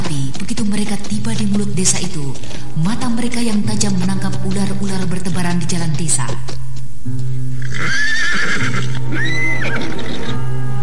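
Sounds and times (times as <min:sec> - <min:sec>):
hooves clopping: 0:00.0 - 0:10.3
speech: 0:00.7 - 0:07.9
horse whinnying: 0:07.6 - 0:10.4.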